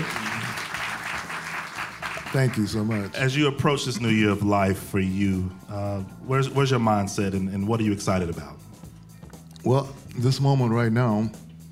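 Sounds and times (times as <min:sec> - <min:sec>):
crowd clapping: 0:00.0 - 0:03.4
speech: 0:02.3 - 0:08.6, 0:09.6 - 0:11.4.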